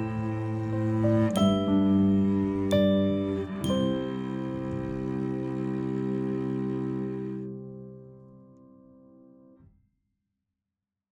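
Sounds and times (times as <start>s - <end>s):
backing music: 0.0s - 8.2s.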